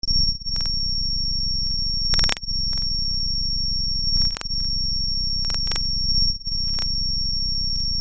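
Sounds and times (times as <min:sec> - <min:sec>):
record noise: 0:00.0 - 0:07.9.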